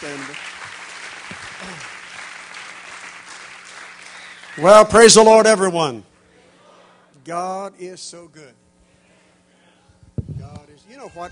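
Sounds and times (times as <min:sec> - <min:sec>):
church audience applause welcoming a missionary to the pulpit: 0:00.0 - 0:05.1
speech: 0:04.6 - 0:06.1, 0:07.2 - 0:08.6, 0:10.9 - 0:11.3.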